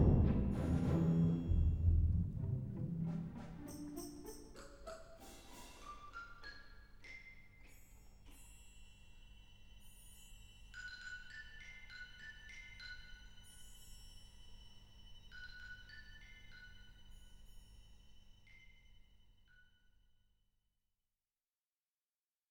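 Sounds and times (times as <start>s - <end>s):
orchestral timpani: 0.0s - 6.4s.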